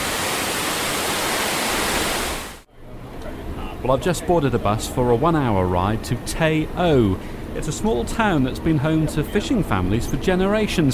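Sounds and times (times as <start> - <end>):
waterfall: 0.0 - 2.7
speech: 3.8 - 10.9.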